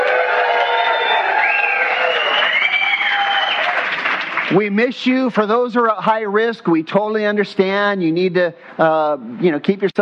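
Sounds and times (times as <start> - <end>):
audience yelling and cheering: 0.0 - 4.1
speech: 4.5 - 10.0.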